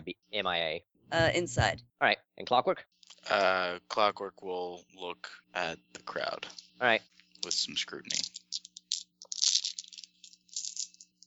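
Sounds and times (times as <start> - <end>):
speech: 0.4 - 8.3
dice rattling and rolling: 7.4 - 11.2.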